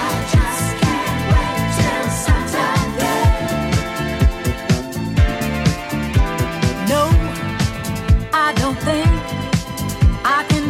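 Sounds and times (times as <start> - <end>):
clean 70s drum loop: 0.0 - 10.6.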